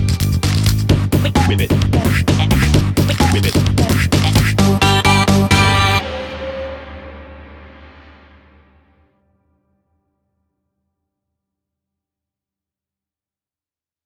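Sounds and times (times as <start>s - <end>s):
battle music: 0.0s - 9.0s.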